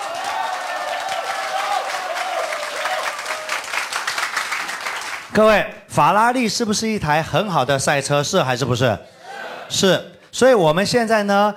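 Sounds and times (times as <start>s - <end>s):
audience applause: 0.0s - 5.3s
speech: 5.3s - 11.5s.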